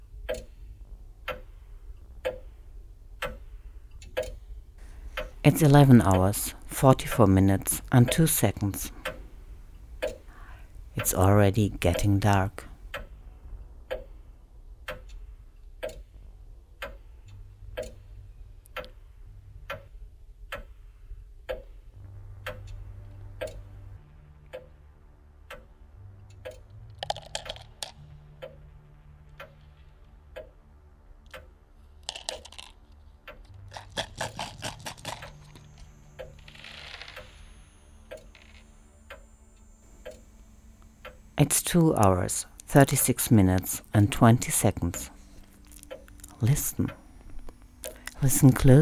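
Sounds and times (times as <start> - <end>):
clocks ticking: 0.0 - 24.8, 25.4 - 30.6, 31.2 - 48.8
low hum: 0.0 - 48.8
speech: 5.4 - 9.0, 11.0 - 12.7, 41.8 - 45.1, 46.4 - 47.0, 48.2 - 48.8.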